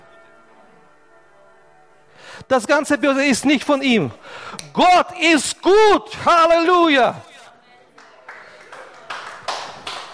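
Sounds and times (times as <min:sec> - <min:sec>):
speech: 0:02.5 - 0:07.3
audience clapping in rhythm: 0:08.0 - 0:10.1.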